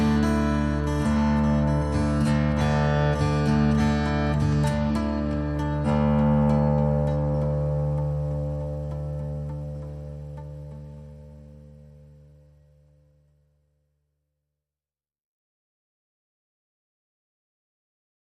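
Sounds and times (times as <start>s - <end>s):
guitars playing: 0.0s - 13.0s.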